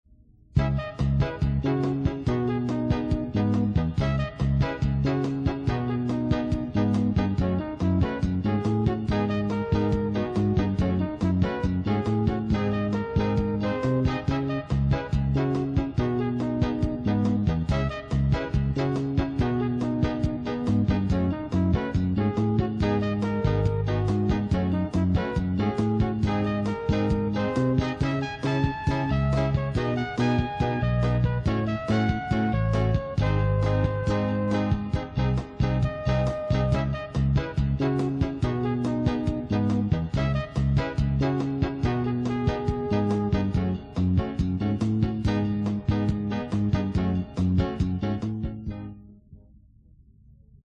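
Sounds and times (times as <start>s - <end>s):
cool jazz music: 0.6s - 49.2s.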